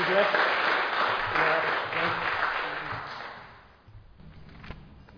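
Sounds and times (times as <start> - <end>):
round of applause: 0.0 - 3.7
speech: 0.2 - 0.5.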